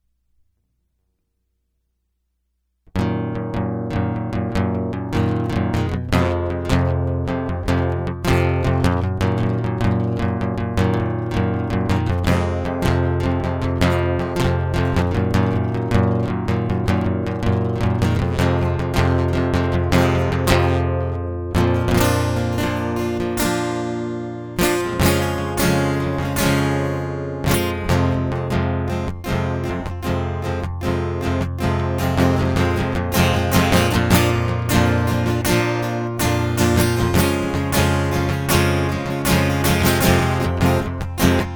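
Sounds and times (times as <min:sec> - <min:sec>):
guitar loop: 0:03.0 - 0:41.5.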